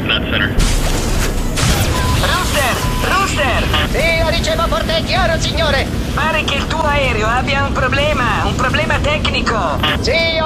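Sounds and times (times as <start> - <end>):
voices: 0.0 - 10.4
loud boom: 0.5 - 6.5
missile being fired, sustained roaring rush: 0.6 - 9.2
speech: 5.0 - 10.4.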